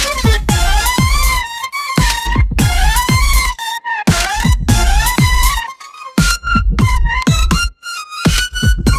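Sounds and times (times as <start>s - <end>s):
electronic synth lead melody: 0.0s - 8.9s.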